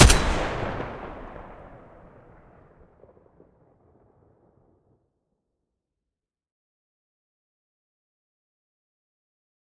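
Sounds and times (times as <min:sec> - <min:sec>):
AK-12 rifle muzzle blast: 0:00.0 - 0:02.1.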